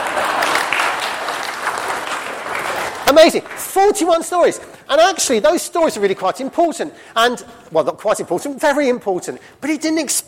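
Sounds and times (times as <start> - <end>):
round of applause: 0.0 - 4.0
speech: 3.1 - 10.2.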